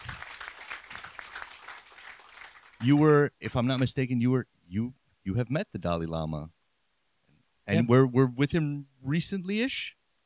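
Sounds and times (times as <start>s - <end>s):
faint audience applause during an on-stage interview: 0.0s - 3.2s
speech: 2.8s - 6.6s, 7.7s - 10.0s.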